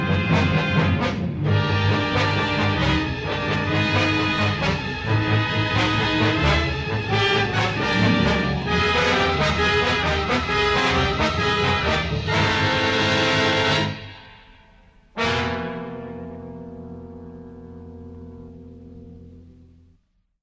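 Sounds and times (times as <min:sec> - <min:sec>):
heavy agitato music: 0:00.0 - 0:14.1.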